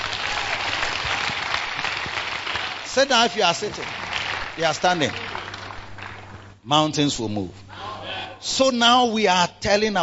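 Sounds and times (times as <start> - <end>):
audience clapping hands: 0.0 - 6.6
speech: 3.0 - 4.0, 4.6 - 5.2, 6.6 - 7.6, 8.4 - 10.0.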